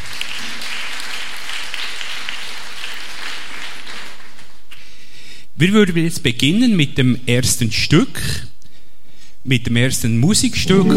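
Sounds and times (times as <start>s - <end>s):
crowd applause: 0.0s - 4.6s
speech: 5.6s - 8.5s, 9.4s - 10.9s.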